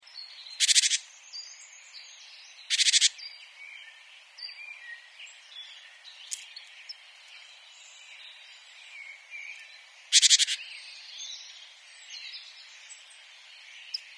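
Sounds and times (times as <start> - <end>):
great tit harsh churring call: 0.6 - 1.1, 2.7 - 3.2, 10.1 - 10.6.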